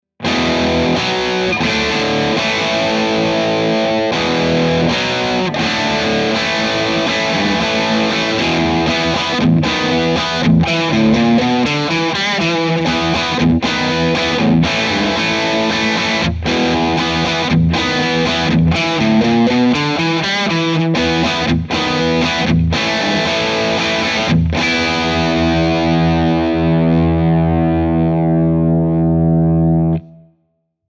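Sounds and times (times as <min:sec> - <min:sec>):
rock chords: 0:00.2 - 0:30.3.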